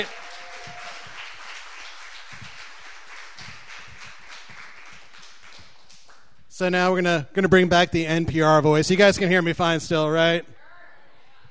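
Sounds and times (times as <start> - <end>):
speech: 0.0 - 0.2, 6.6 - 10.6
audience applause: 0.0 - 6.1.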